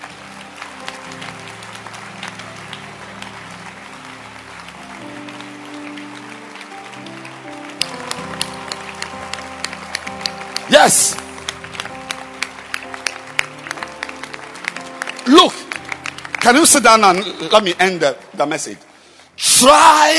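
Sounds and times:
audience clapping hands: 0:00.0 - 0:18.8
speech: 0:10.7 - 0:11.2, 0:16.5 - 0:18.9, 0:19.6 - 0:20.1.

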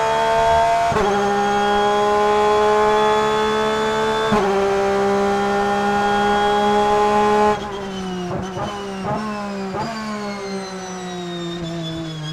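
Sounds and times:
Porsche 911 RSR in-car audio at Charlotte 2020: 0:00.0 - 0:12.3.

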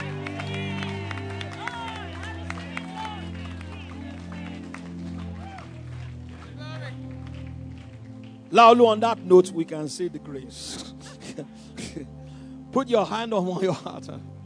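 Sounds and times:
audience clapping: 0:00.0 - 0:09.3
speech: 0:08.5 - 0:12.1, 0:12.7 - 0:14.3.

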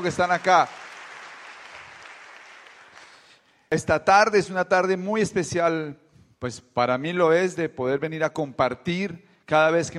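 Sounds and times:
speech: 0:00.0 - 0:00.8, 0:03.7 - 0:09.9
applause: 0:00.0 - 0:03.4.

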